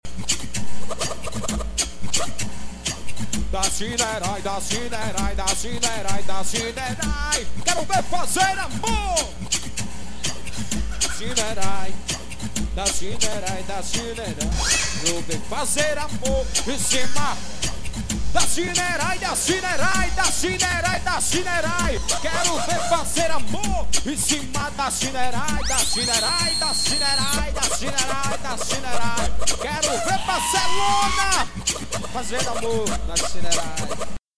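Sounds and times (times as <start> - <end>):
funk music: 0.1 - 34.2.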